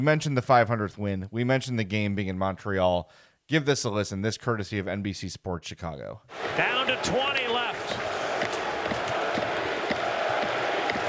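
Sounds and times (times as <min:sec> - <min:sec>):
speech: 0:00.0 - 0:08.0
crowd shouts: 0:06.3 - 0:11.0
large arena crowd chanting a player's name: 0:06.3 - 0:11.0
scattered claps: 0:06.4 - 0:11.0.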